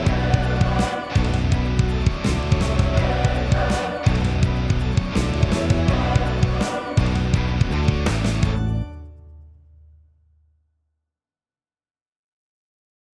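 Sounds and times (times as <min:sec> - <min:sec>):
ska music: 0:00.0 - 0:09.0.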